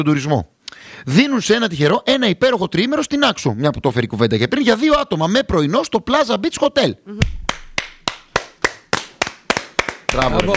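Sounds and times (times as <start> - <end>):
speech: 0.0 - 7.4, 10.1 - 10.5
applause: 7.5 - 10.5.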